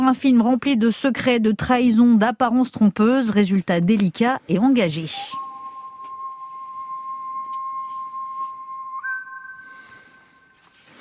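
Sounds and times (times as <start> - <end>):
speech: 0.0 - 5.4
person whistling a famous film soundtrack melody: 5.2 - 10.8.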